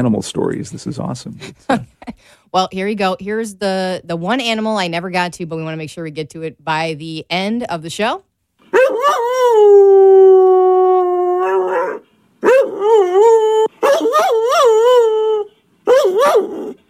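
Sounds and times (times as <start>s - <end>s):
speech: 0.0s - 10.4s
beagle howling: 8.7s - 16.8s.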